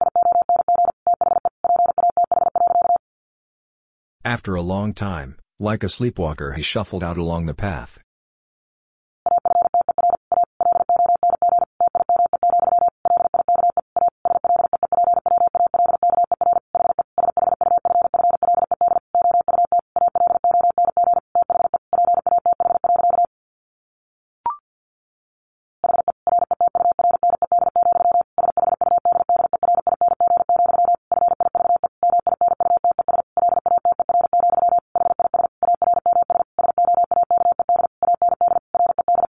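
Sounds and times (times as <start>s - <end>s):
fast Morse code beeps at around 50 words per minute: 0.0s - 3.0s, 9.3s - 23.3s, 25.8s - 39.3s
speech: 4.2s - 8.0s.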